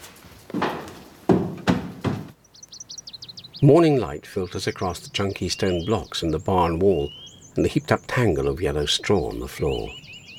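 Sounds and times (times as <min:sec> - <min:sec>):
footsteps stomping up steps: 0:00.5 - 0:02.4
speech: 0:03.6 - 0:10.0.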